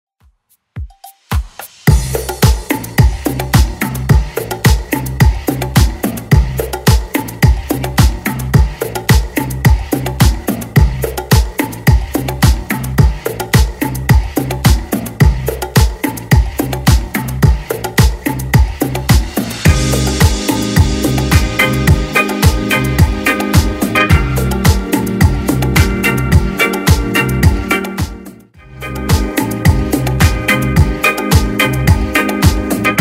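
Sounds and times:
70s dance music: 0:00.8 - 0:32.9.

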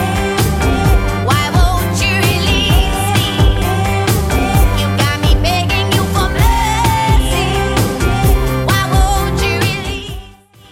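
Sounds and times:
Redrum drum machine beat at 130 bpm: 0:00.0 - 0:10.3.

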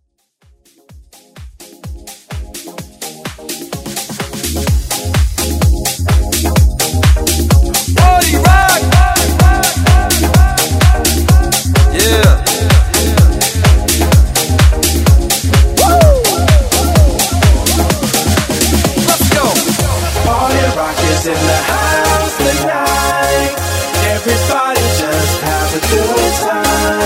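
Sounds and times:
house music: 0:00.0 - 0:27.0.

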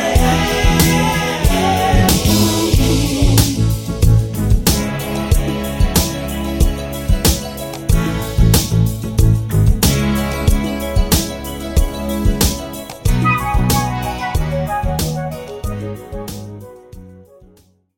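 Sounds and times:
funk drum beat: 0:00.0 - 0:17.1.

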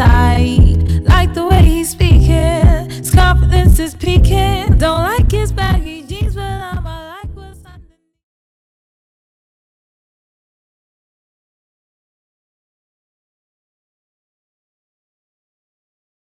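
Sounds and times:
extended 117 BPM music track: 0:00.0 - 0:07.0.

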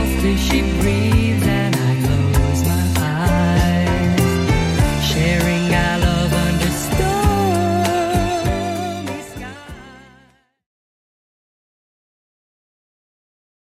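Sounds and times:
70s-style drum beat at 98 bpm: 0:00.0 - 0:09.8.

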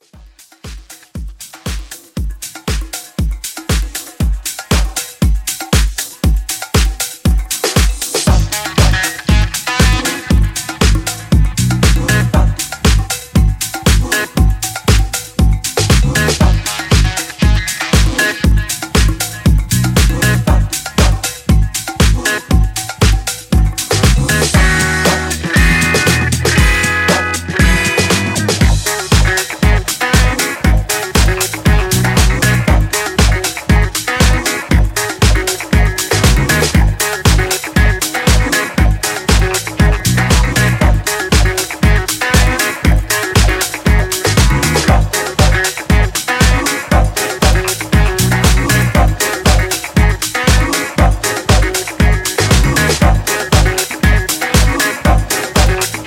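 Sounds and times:
1970s pop music at 118 BPM: 0:00.0 - 0:56.0.

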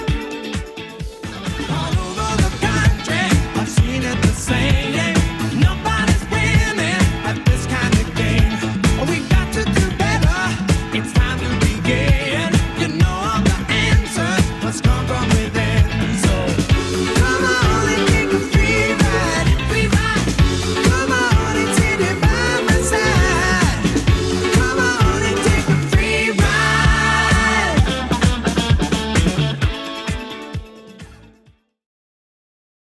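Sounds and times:
70s drum machine beat at 130 bpm: 0:00.0 - 0:30.8.

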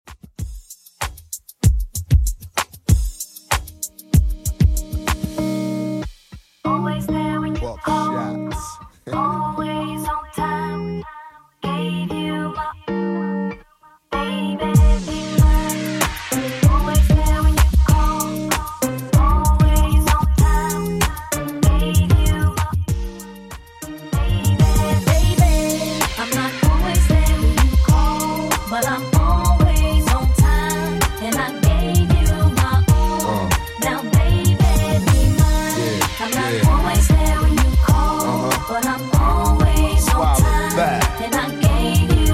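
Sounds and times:
music at 96 bpm: 0:00.1 - 0:42.3.

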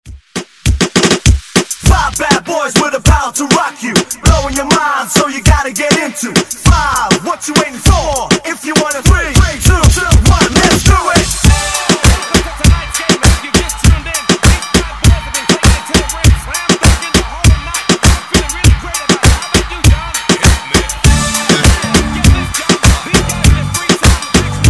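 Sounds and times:
reggaeton music: 0:00.0 - 0:24.6.

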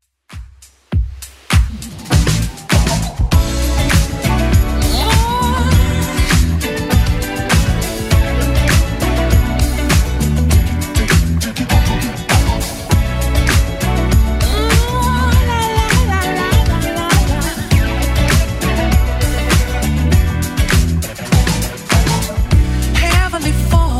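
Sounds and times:
80s club edit music at 100 BPM: 0:00.4 - 0:23.9.

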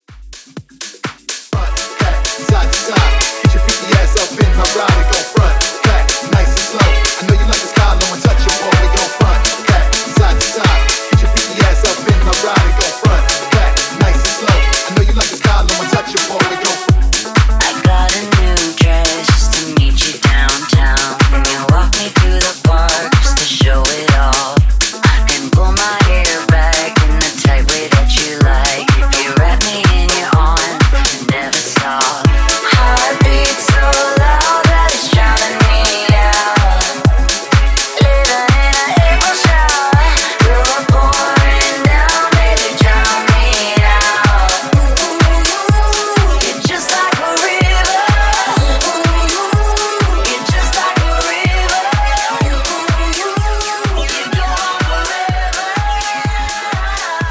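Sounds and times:
house dance music at 125 BPM: 0:00.0 - 0:57.3.

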